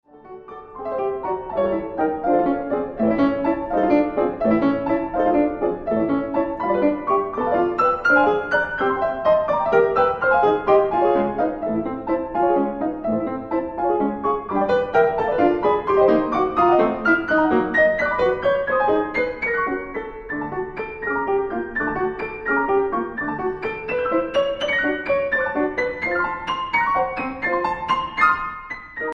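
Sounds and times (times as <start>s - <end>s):
piano prelude: 0.0s - 29.1s.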